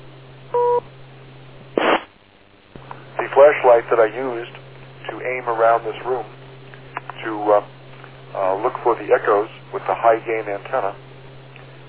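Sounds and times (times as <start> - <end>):
beep: 0.5 - 0.8
speech: 3.4 - 6.4, 7.2 - 7.7, 8.3 - 11.0.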